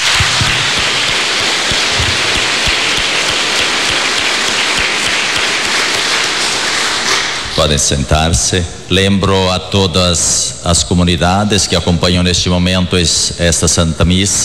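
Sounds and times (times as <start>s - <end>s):
audience applause: 0.0s - 7.6s
speech: 7.6s - 14.4s.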